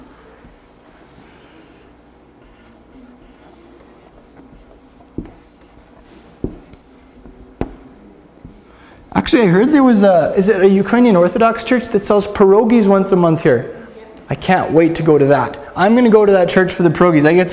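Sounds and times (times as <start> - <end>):
pen or pencil scratching while drawing a Russian Ukrainian Orthodox church: 1.2 - 8.8
speech: 9.2 - 17.5.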